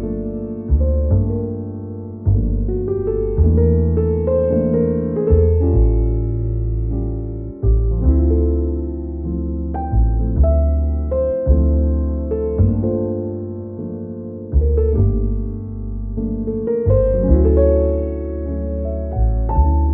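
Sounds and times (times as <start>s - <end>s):
soothing calming relaxing jazz podcast music: 0.0s - 19.9s.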